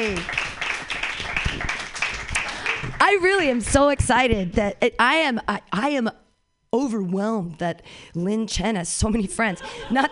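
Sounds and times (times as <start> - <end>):
speech: 0.0 - 0.5, 3.0 - 10.1
audience clapping: 0.0 - 4.0
laughter: 9.4 - 10.1.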